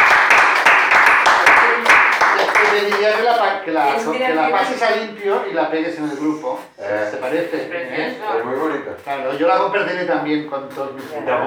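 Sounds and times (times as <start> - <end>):
audience clapping at a Spanish-language poetry gathering: 0.0 - 3.5
speech: 3.5 - 11.4.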